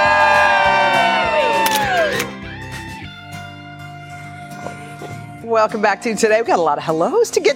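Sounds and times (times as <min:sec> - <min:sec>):
outdoor crowd cheering and whooping: 0:00.0 - 0:03.1
speech: 0:05.6 - 0:07.5.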